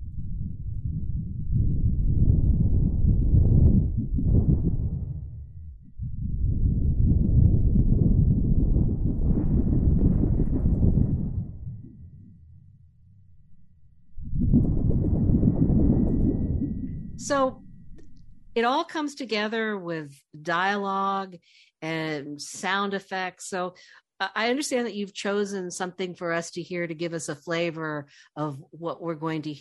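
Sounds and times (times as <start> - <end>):
thunder made by shaking a sheet of metal: 0.0 - 12.1, 14.2 - 18.6
speech: 17.2 - 17.6, 18.6 - 29.5.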